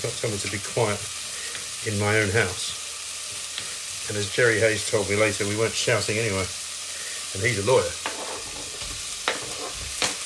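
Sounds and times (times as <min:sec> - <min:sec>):
speech: 0:00.0 - 0:01.2, 0:01.8 - 0:02.8, 0:04.1 - 0:06.6, 0:07.3 - 0:08.1
chorizo sizzling in a pan: 0:00.0 - 0:10.2
scraping while stirring chorizo: 0:08.0 - 0:10.1.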